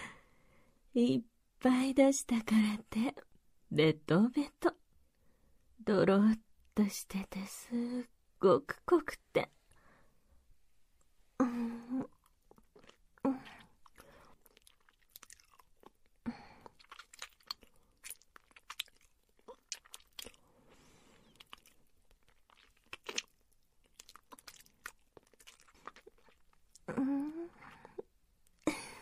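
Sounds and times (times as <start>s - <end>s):
speech: 1.0s - 4.8s, 5.8s - 9.6s
person tasting food, chewing and crunching: 12.0s - 28.7s.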